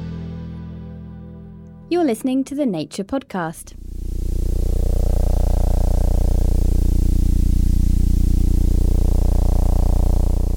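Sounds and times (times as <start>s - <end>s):
speech: 1.9s - 3.8s
faint hiss: 3.7s - 10.5s
sonified oscillations of a spinning dwarf star: 3.8s - 10.5s.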